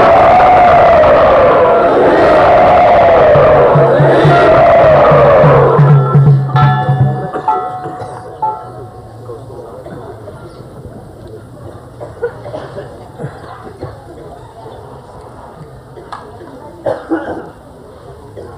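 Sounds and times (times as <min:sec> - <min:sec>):
crowd cheering and whooping to welcome a speaker at a Vaishnava gathering: 0:00.0 - 0:08.0.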